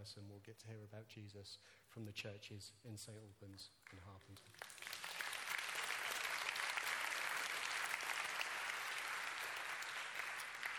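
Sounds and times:
speech: 0.0s - 4.9s
audience applause: 4.3s - 10.7s.

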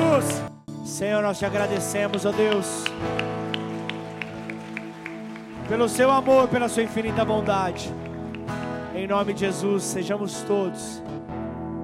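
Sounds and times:
speech: 1.0s - 3.4s, 5.7s - 8.0s, 9.0s - 11.2s
audience applauding: 1.6s - 9.0s.

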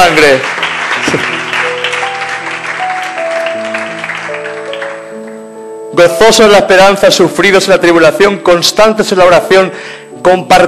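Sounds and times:
applause: 0.0s - 5.2s
speech: 0.2s - 0.6s, 6.0s - 10.6s.

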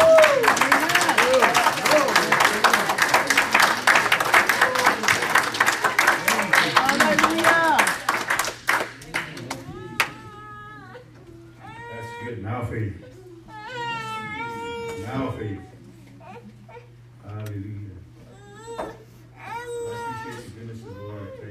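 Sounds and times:
audience hand clapping: 0.0s - 10.2s.

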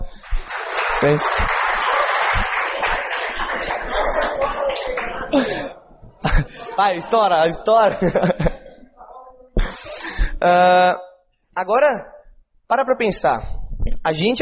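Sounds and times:
audience applause: 0.0s - 5.7s
laughter: 0.0s - 8.9s
speech: 1.0s - 1.7s, 4.4s - 8.3s, 10.4s - 11.0s, 11.6s - 12.1s, 12.7s - 14.4s.

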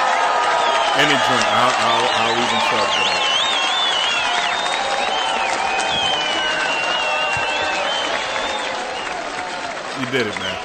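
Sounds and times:
applause sound effect: 0.0s - 10.6s
speech: 1.0s - 3.3s, 10.0s - 10.6s
laughter: 1.0s - 3.4s, 9.9s - 10.6s.

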